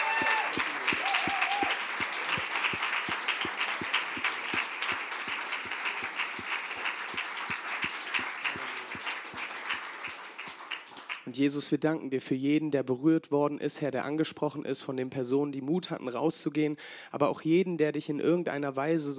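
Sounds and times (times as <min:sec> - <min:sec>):
large crowd clapping and cheering: 0:00.0 - 0:11.3
speech: 0:11.4 - 0:19.1.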